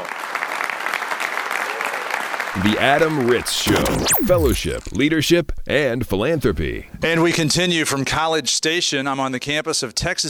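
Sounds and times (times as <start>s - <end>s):
round of applause: 0.0s - 2.6s
speech: 2.5s - 10.2s.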